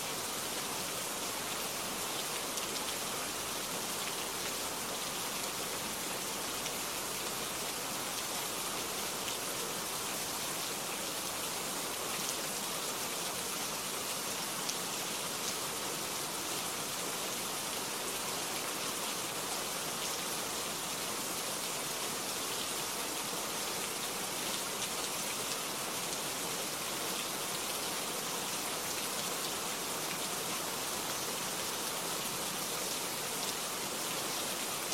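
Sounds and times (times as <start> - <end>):
light rain: 0.0 - 34.9.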